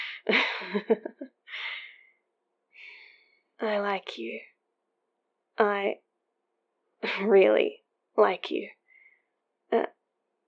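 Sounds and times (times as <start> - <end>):
speech: 0.3 - 1.2, 3.6 - 4.5, 5.6 - 6.0, 7.0 - 8.8, 9.7 - 10.0
deep nervous breath: 1.5 - 3.5.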